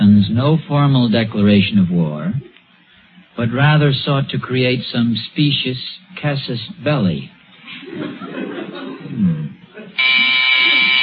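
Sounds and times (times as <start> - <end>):
speech: 0.4 - 2.5, 3.4 - 8.4
low voices and chuckling: 7.6 - 11.0
harsh electric doorbell buzzing: 10.0 - 11.0.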